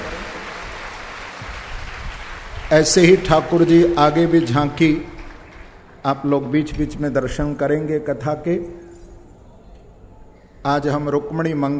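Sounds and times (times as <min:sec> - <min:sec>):
audience applause at a Hindu religious discourse: 0:00.0 - 0:05.9
speech: 0:02.7 - 0:05.1, 0:06.0 - 0:08.8, 0:10.6 - 0:11.7.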